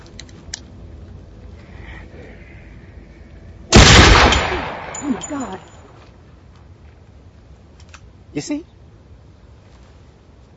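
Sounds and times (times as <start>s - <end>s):
gunshot: 3.8s - 5.2s
speech: 5.1s - 5.8s, 8.4s - 8.8s.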